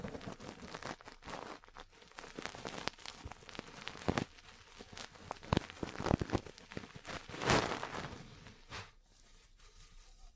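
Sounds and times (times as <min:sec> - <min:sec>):
sharp crackling bursts: 0:00.0 - 0:08.2
ear cleaning rustling and scratching: 0:00.0 - 0:10.3.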